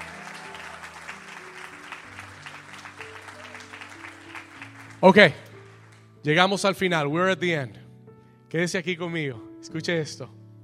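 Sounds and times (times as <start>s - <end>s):
loud audience applause: 0.0s - 6.0s
speech: 5.0s - 5.4s, 6.2s - 7.8s, 8.5s - 10.4s.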